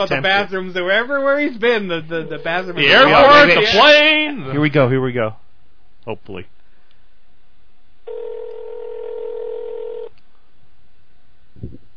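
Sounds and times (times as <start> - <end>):
speech: 0.0 - 5.4, 6.0 - 6.6
telephone dialing tone: 8.1 - 10.1.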